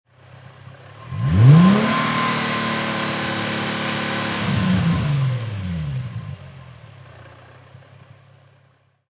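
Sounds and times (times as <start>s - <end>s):
Infinity G35 high-performance car engine long rev: 0.8s - 7.8s.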